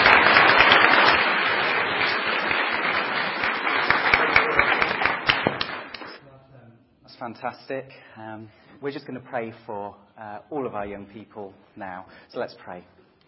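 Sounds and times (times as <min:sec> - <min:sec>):
audience round of applause: 0:00.0 - 0:06.2
speech: 0:07.3 - 0:13.0.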